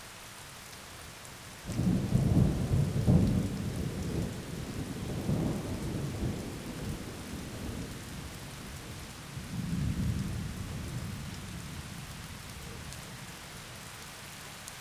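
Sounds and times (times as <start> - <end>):
heavy rain in forest: 0.0 - 14.8
thunder in forest: 1.7 - 12.1.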